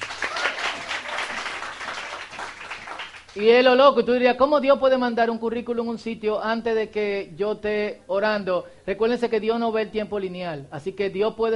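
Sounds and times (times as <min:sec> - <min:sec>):
audience applause: 0:00.0 - 0:03.4
speech: 0:03.4 - 0:11.5.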